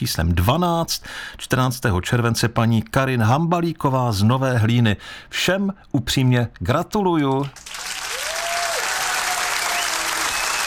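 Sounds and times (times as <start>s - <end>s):
speech: 0.0s - 7.8s
crowd applause for the winners: 7.6s - 10.6s.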